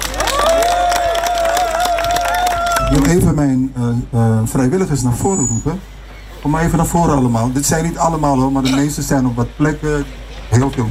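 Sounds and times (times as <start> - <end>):
audience applause and cheering: 0.0 - 3.2
speech: 2.9 - 10.8.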